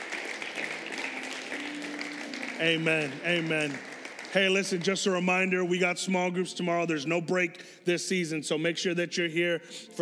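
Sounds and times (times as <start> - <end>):
audience applause: 0.0 - 5.5
speech: 2.6 - 10.0.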